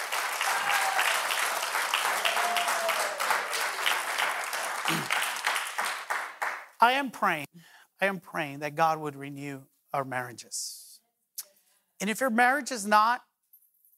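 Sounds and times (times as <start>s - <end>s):
audience applause: 0.0s - 6.7s
speech: 6.8s - 10.8s, 12.0s - 13.3s.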